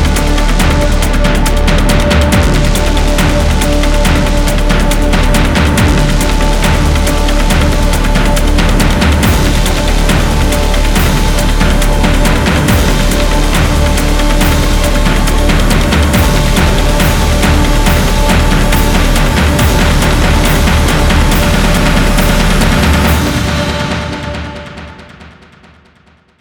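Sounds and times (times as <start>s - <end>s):
suspenseful scary horror epic cinematic background music: 0.0s - 25.9s.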